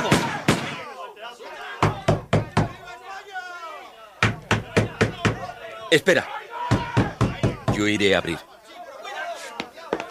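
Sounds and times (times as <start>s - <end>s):
heavy banging on the front entrance door: 1.8s - 2.8s, 4.2s - 5.5s, 6.7s - 7.9s
speech: 5.9s - 6.4s, 7.8s - 8.5s.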